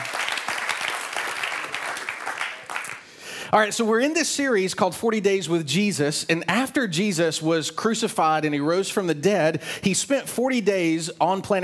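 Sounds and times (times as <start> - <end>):
audience applauding: 0.0 - 3.1
speech: 3.5 - 11.6.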